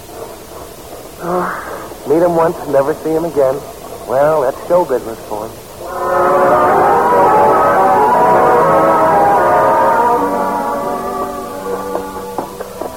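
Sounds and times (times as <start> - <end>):
speech: 1.2 - 6.7
calliope playing on a boat: 5.8 - 12.9.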